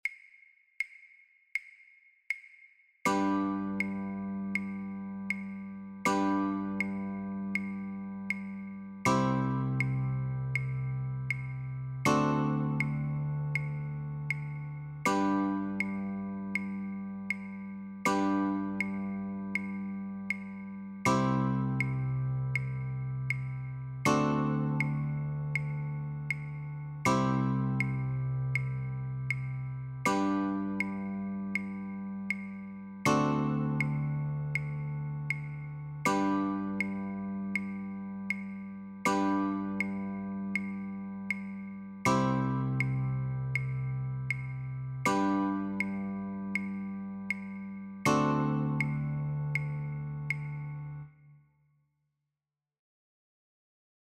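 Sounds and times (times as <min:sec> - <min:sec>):
guitar chords: 0:03.1 - 0:51.1.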